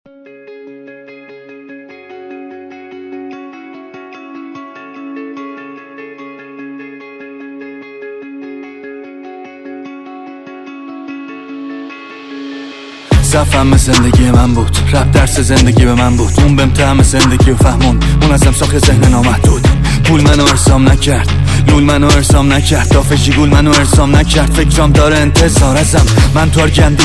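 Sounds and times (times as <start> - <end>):
Farsi rap remix: 13.1 - 27.0.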